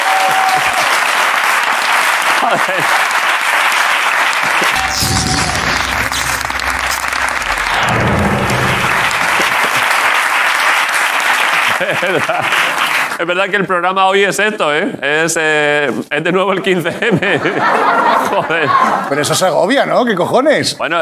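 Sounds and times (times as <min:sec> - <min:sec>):
studio audience applause: 0:00.0 - 0:13.2
laughter: 0:02.3 - 0:03.1, 0:11.6 - 0:12.9, 0:16.8 - 0:19.4
speech: 0:02.4 - 0:03.1, 0:11.8 - 0:21.0.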